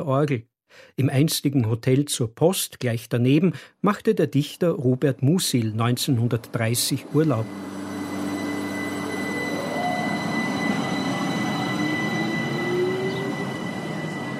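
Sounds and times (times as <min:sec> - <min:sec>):
speech: 0:00.0 - 0:07.8
train rumbling between the mountains of the Salzkammergut: 0:06.3 - 0:14.3
thin squealing tones: 0:07.0 - 0:14.3.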